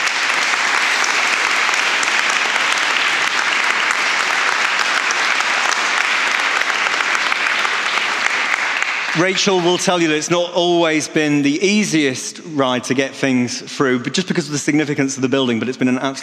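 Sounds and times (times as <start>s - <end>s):
audience applause: 0.0s - 10.2s
speech: 9.2s - 16.2s.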